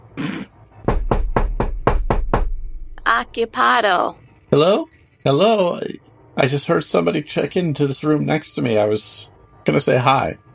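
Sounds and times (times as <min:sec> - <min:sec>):
knock on a hotel room door: 0:00.8 - 0:02.6
speech: 0:03.2 - 0:10.4.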